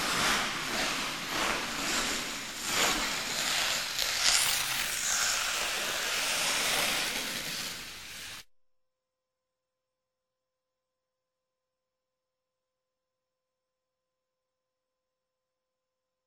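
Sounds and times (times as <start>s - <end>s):
several skaters passing: 0.0s - 8.5s.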